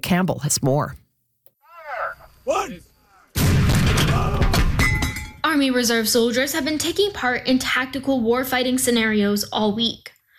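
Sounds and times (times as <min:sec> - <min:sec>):
speech: 0:00.0 - 0:01.0, 0:02.6 - 0:02.9, 0:05.5 - 0:10.1
Army Reserve howitzer firing during Exercise Western Sabre at CFB Wainwright: 0:03.4 - 0:04.8.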